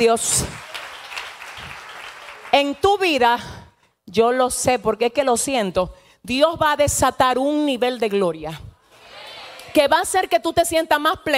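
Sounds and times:
speech: 0:00.0 - 0:00.6, 0:02.5 - 0:08.7, 0:09.7 - 0:11.3
audience applauding steadily: 0:00.3 - 0:02.8.

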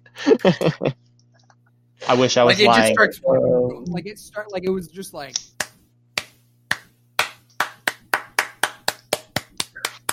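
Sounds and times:
faint low hum: 0:00.0 - 0:10.1
laughter: 0:00.2 - 0:00.9, 0:02.0 - 0:03.5
speech: 0:00.3 - 0:01.0, 0:02.1 - 0:05.6
hands clapping repeatedly: 0:05.4 - 0:10.1.

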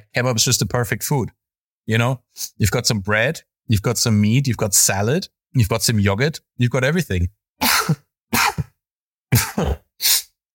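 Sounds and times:
speech: 0:00.1 - 0:08.0
person sneezing: 0:07.6 - 0:10.4.

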